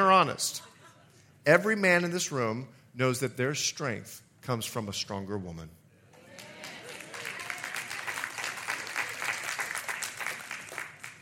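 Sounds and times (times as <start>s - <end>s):
speech: 0.2s - 0.7s, 1.4s - 5.8s
audience clapping: 6.2s - 11.2s.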